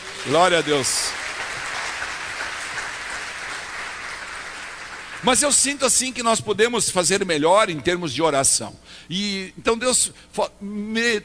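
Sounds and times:
audience applause: 0.0s - 5.6s
speech: 0.2s - 1.2s, 5.2s - 11.2s.

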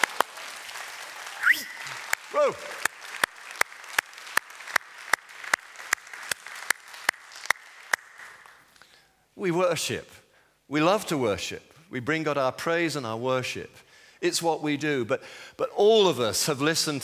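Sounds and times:
crowd noise: 0.0s - 7.8s
audience clapping in steady rhythm: 0.0s - 8.8s
person calling out an exclamation: 2.3s - 2.8s
speech: 2.3s - 2.9s, 9.4s - 17.0s.

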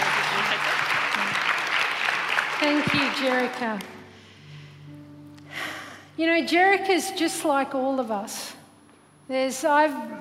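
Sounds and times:
audience clapping: 0.0s - 4.1s
speech: 2.6s - 4.0s, 6.2s - 8.6s, 9.3s - 10.1s.

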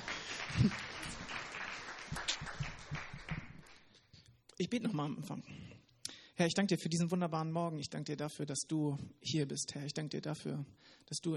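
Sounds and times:
audience clapping: 0.0s - 4.1s
speech: 0.6s - 0.9s, 4.6s - 5.6s, 6.4s - 11.3s.

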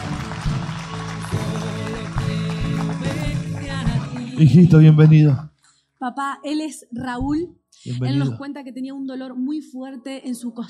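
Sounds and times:
loud applause: 0.0s - 4.4s
speech: 4.4s - 10.6s.

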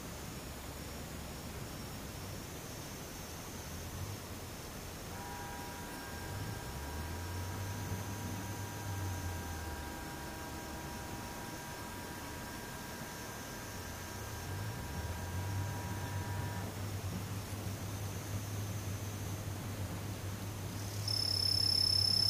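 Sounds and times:
daytime insects droning in a high buzz: 0.0s - 22.2s
steady mid tone hum: 0.0s - 22.2s
low vehicle rumbles passing: 5.1s - 22.2s.

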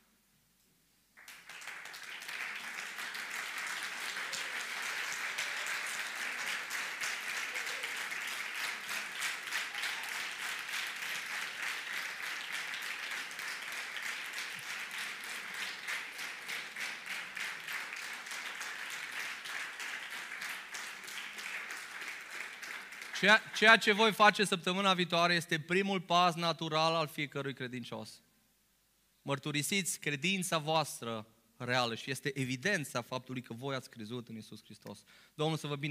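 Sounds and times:
church congregation applauding people who confessed their faith: 1.2s - 24.5s
speech: 23.2s - 28.3s, 29.3s - 35.8s.

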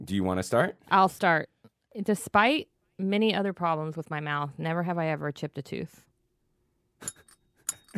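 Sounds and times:
speech: 0.0s - 6.1s, 7.0s - 7.3s
small hand bell ringing: 7.0s - 7.9s.

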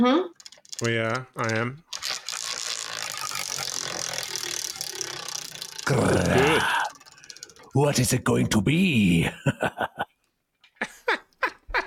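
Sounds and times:
speech: 0.0s - 1.9s, 5.9s - 6.7s, 7.7s - 10.0s
prize wheel spun to pick a topic: 0.3s - 8.3s
laughter: 9.0s - 10.1s, 10.8s - 11.8s.

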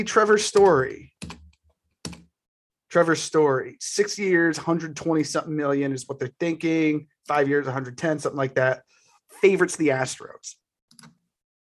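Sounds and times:
speech: 0.0s - 1.1s, 2.9s - 11.2s
computer keyboard typing: 0.4s - 2.3s.

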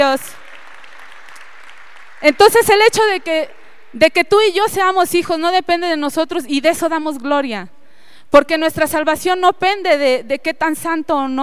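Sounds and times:
speech: 0.1s - 0.4s, 2.2s - 11.4s
audience applause: 0.4s - 3.9s.

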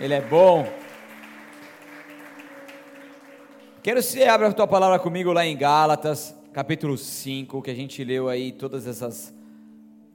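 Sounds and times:
speech: 0.0s - 0.8s, 3.8s - 9.4s
audience applause: 0.0s - 3.9s.

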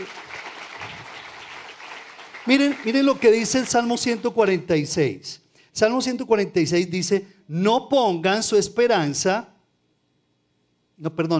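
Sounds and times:
speech: 0.0s - 0.3s, 2.4s - 9.5s, 11.0s - 11.3s
audience applauding: 0.0s - 3.9s.

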